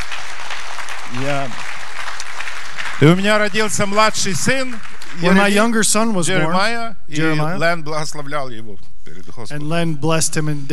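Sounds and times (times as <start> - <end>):
audience applause: 0.0 - 6.4
speech: 1.1 - 1.7, 3.0 - 10.7.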